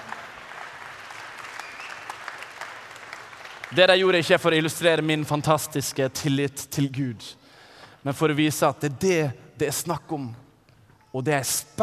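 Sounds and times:
audience applause: 0.0s - 4.2s
speech: 3.7s - 7.4s, 8.0s - 10.4s, 11.1s - 11.8s.

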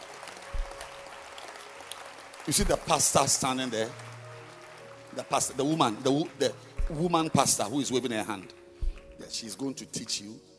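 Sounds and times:
audience clapping hands: 0.0s - 9.6s
speech: 2.4s - 4.1s, 5.2s - 8.6s, 9.2s - 10.5s.

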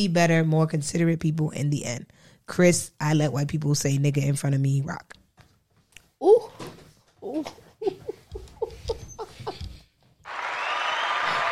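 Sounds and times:
speech: 0.0s - 5.2s, 7.3s - 8.0s
laughter: 7.8s - 9.8s
clapping: 10.2s - 11.5s.

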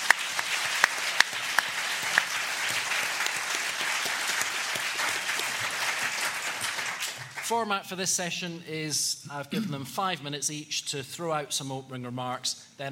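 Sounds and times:
audience applause welcoming a panel of speakers at a session: 0.0s - 7.5s
speech: 7.5s - 12.8s.

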